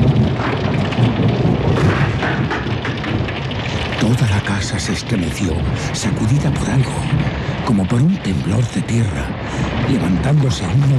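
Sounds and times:
thunder: 0:00.0 - 0:10.9
torrential downpour: 0:00.0 - 0:10.9
speech: 0:04.8 - 0:10.9.

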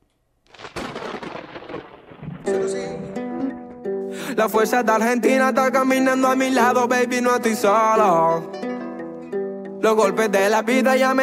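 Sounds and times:
loud rumbling thunder-like crash in a rap track's intro: 0:00.6 - 0:03.2
speech: 0:02.5 - 0:03.2, 0:04.4 - 0:08.6, 0:09.8 - 0:11.2.

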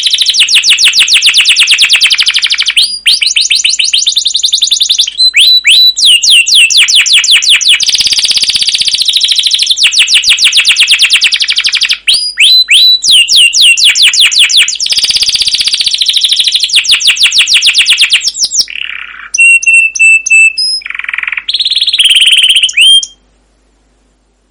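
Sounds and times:
canary trilling: 0:00.0 - 0:23.2.

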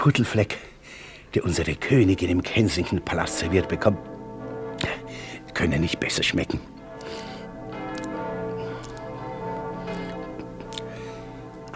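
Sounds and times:
speech: 0:00.0 - 0:04.2, 0:05.6 - 0:07.3
church bells ringing: 0:00.0 - 0:11.7.

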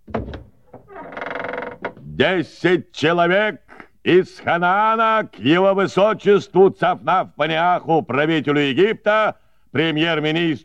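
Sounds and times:
palace door opened by a guard: 0:00.0 - 0:02.0
speech: 0:02.2 - 0:10.6.

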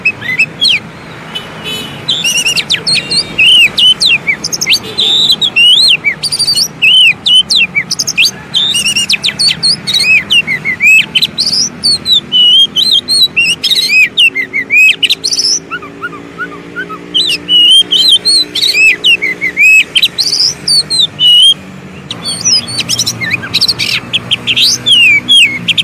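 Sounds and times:
Oriental magpie-robin song: 0:00.0 - 0:25.8.

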